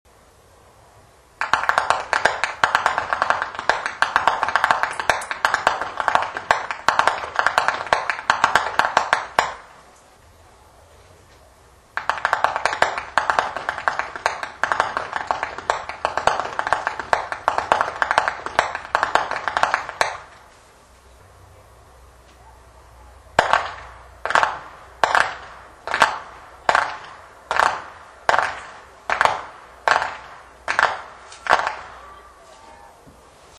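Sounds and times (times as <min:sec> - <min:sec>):
whip cracking in Flachgau: 0:01.4 - 0:09.8, 0:12.0 - 0:20.5, 0:23.4 - 0:32.0.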